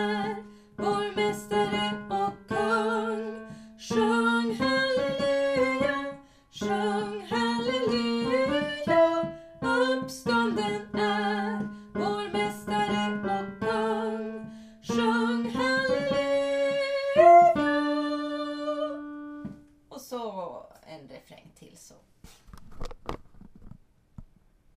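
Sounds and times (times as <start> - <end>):
tenor singing: 0.0 - 19.3.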